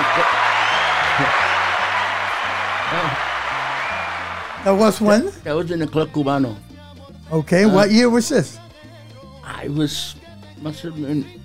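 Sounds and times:
crowd applause: 0.0s - 5.4s
speech: 1.2s - 1.4s, 4.6s - 6.7s, 7.3s - 8.6s, 9.6s - 11.4s.

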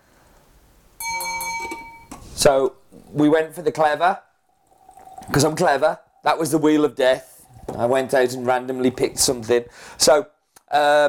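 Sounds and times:
kitchen timer pre-warning alert: 1.0s - 2.1s
speech: 2.4s - 4.3s, 5.3s - 11.0s.

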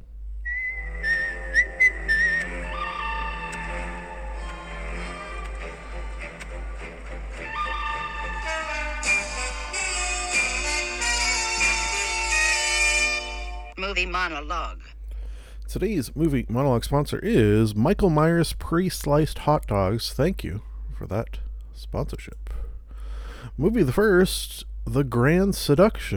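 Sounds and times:
segment jingle played from phone button: 0.8s - 13.8s
speech: 14.0s - 14.8s, 15.7s - 22.6s, 23.5s - 26.1s.

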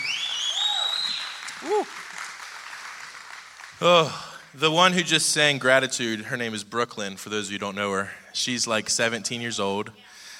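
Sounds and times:
audience applause: 0.0s - 4.8s
speech: 1.6s - 2.0s, 3.8s - 10.2s.

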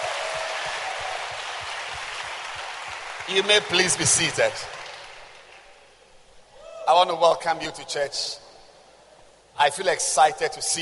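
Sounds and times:
hand clapping: 0.0s - 5.8s
speech: 3.3s - 4.8s, 6.9s - 8.4s, 9.6s - 10.7s.

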